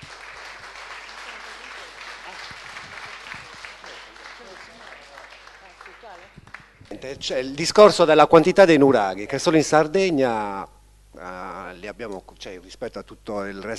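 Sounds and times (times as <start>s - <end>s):
applause: 0.0s - 7.0s
speech: 6.1s - 13.7s.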